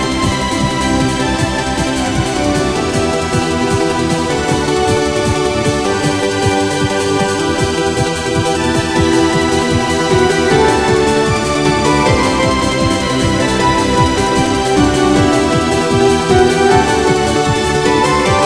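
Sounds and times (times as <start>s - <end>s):
gliding background music: 0.0s - 18.4s.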